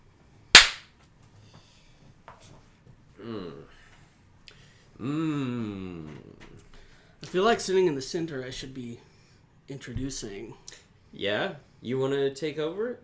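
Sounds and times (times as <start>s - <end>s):
hand clap: 0.6s - 0.9s
speech: 5.0s - 5.4s, 7.3s - 9.1s, 9.7s - 13.0s.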